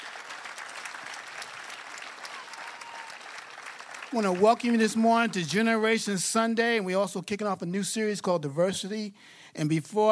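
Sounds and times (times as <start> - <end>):
crowd applauding for leaders: 0.0 - 6.0
speech: 4.1 - 10.1.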